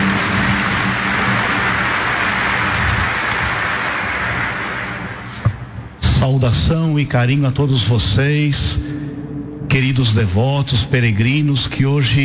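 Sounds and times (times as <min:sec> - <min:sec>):
crowd applause: 0:00.0 - 0:05.4
speech: 0:06.3 - 0:08.9, 0:09.7 - 0:12.2.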